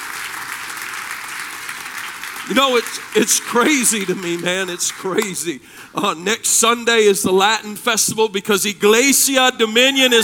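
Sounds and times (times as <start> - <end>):
audience applause: 0.0 - 6.1
speech: 2.5 - 10.2.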